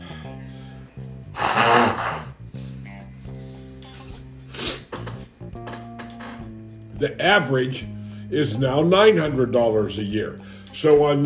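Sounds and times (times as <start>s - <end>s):
sneeze: 1.4s - 2.3s, 4.6s - 5.0s
speech: 7.0s - 11.2s.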